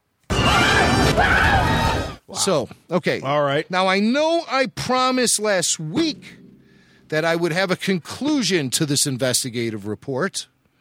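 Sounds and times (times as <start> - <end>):
movie scream from Solo and The Last Jedi: 0.3 - 2.2
speech: 2.4 - 6.4, 7.1 - 10.6.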